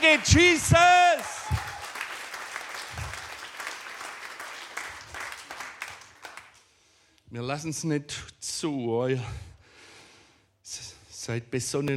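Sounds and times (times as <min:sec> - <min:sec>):
audience applauding: 0:00.0 - 0:06.6
speech: 0:00.1 - 0:00.9, 0:07.5 - 0:09.5, 0:11.2 - 0:11.9.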